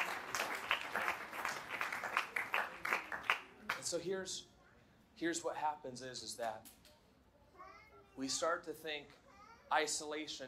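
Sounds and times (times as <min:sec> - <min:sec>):
audience clapping hands: 0:00.0 - 0:03.9
speech: 0:03.9 - 0:04.5, 0:05.2 - 0:06.8, 0:08.2 - 0:10.4.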